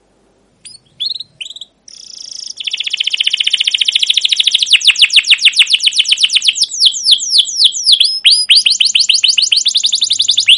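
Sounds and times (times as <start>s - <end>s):
canary song: 0.6s - 10.5s.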